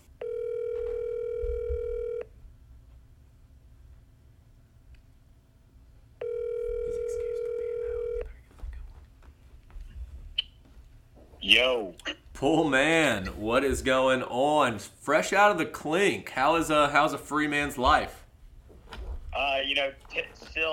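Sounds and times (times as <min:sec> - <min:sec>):
low hum: 0:00.0 - 0:20.7
phone line ringback tones on an outgoing call: 0:00.2 - 0:02.3, 0:06.2 - 0:08.3
speech: 0:11.6 - 0:18.2, 0:19.8 - 0:20.7.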